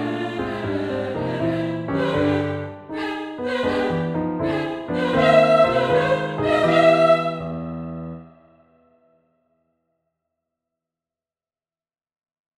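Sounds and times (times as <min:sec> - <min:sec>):
simulated singing: 0:00.0 - 0:07.6
piano: 0:00.0 - 0:08.9.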